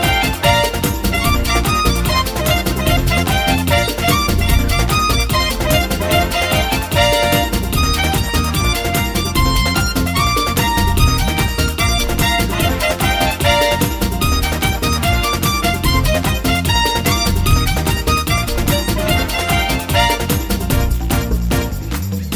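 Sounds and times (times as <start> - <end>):
merengue music: 0.0 - 22.3.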